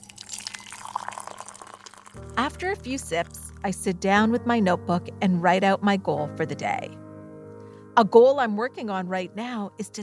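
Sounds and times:
fresh coffee pouring into a cup: 0.0s - 3.6s
speech: 2.2s - 7.0s, 8.0s - 10.0s.

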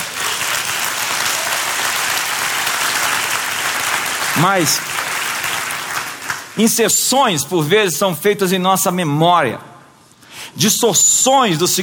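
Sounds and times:
applause: 0.0s - 6.8s
speech: 4.4s - 4.9s, 6.6s - 9.7s, 10.6s - 11.8s.

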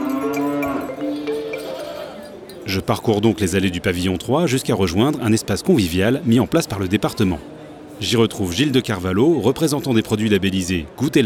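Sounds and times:
cattle mooing at the Salon de l'Agriculture: 0.0s - 2.2s
speech: 2.7s - 11.2s.

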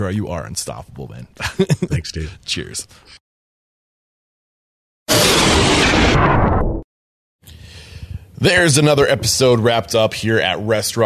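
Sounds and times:
speech: 0.0s - 3.2s, 8.4s - 11.0s
power failure bang: 5.1s - 6.8s.

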